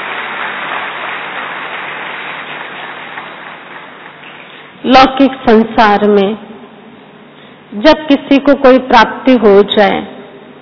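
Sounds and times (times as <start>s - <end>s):
audience applause welcoming an honoured guest: 0.0s - 4.7s
speech: 4.9s - 6.4s, 7.7s - 10.1s.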